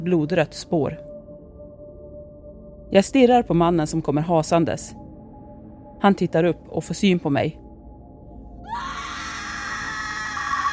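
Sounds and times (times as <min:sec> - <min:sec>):
speech: 0:00.0 - 0:01.1, 0:02.9 - 0:05.0, 0:06.0 - 0:07.6
terrified human scream: 0:08.6 - 0:10.7.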